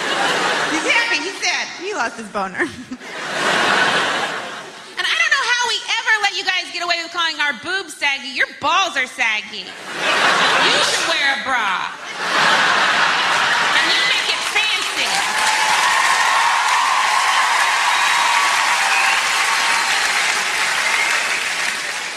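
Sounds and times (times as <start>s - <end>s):
laughter: 0.0s - 1.8s, 2.5s - 5.7s, 9.7s - 22.0s
speech: 2.0s - 3.7s, 6.4s - 12.9s
audience of women clapping: 13.4s - 22.1s.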